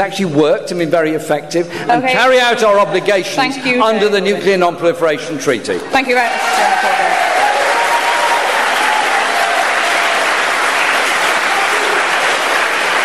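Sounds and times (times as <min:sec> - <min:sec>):
speech: 0:00.0 - 0:07.4
audience applause: 0:06.2 - 0:13.0.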